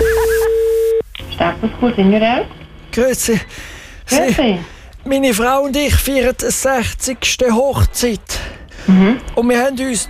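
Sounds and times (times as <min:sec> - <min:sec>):
telephone call tone as a phone line connects at a radio station: 0:00.0 - 0:01.1
brief telephone line noise: 0:00.0 - 0:01.4
speech: 0:01.6 - 0:10.0.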